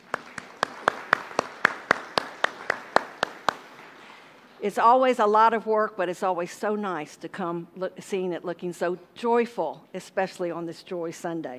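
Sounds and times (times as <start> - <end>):
audience applauding: 0.0 - 4.5
speech: 4.6 - 11.5.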